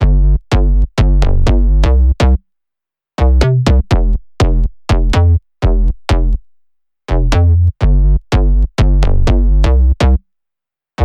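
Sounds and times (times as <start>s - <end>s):
bass: 0.0s - 2.4s, 3.2s - 10.3s.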